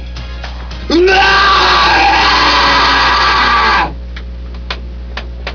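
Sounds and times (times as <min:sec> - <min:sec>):
person screaming: 0:00.9 - 0:04.0.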